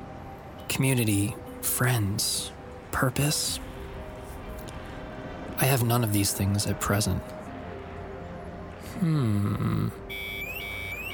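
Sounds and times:
speech: 0:00.8 - 0:03.7, 0:05.6 - 0:07.4, 0:09.0 - 0:10.2
alarm sound effect: 0:10.1 - 0:11.1.

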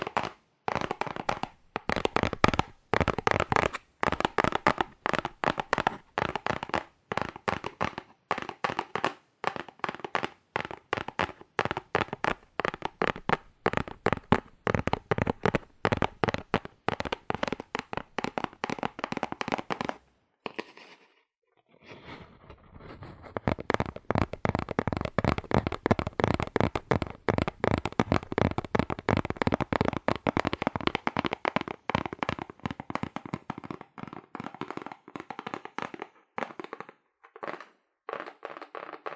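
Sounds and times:
fast aggressive tapping on cardboard: 0:00.0 - 0:20.0, 0:22.8 - 0:39.1.

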